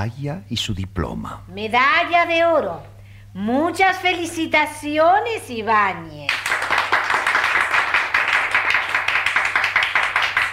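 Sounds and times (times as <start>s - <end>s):
speech: 0.0s - 6.4s
half-hearted applause: 6.3s - 10.5s.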